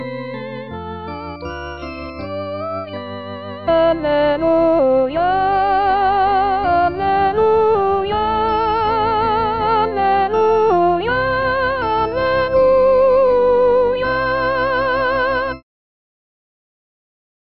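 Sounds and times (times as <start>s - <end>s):
sopranos singing a canticle: 3.7s - 15.5s.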